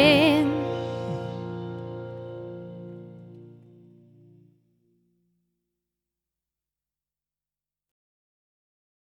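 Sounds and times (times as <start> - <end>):
song: 0.0 - 4.4.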